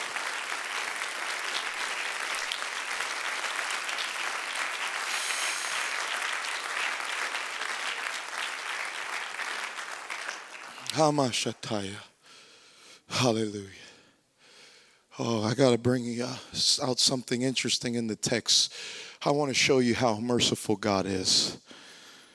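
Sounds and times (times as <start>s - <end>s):
audience clapping: 0.0s - 11.7s
speech: 11.0s - 12.1s, 13.2s - 13.8s, 15.2s - 21.8s.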